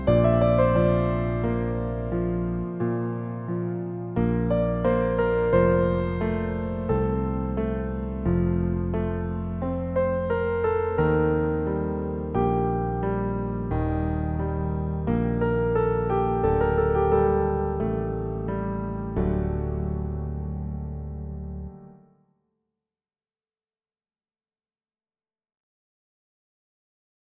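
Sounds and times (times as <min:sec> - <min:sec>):
music in D minor at 88 BPM with bass: 0:00.0 - 0:21.8.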